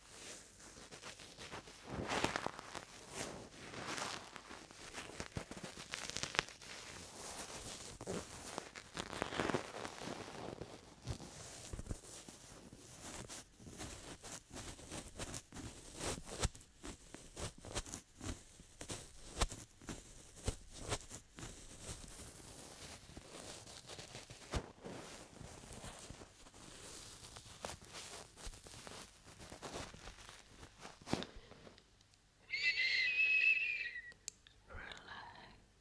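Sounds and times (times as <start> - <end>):
ear cupping and massage rubbing and rustling: 0.0 - 31.8
brief bright whistling squeak: 32.5 - 34.2.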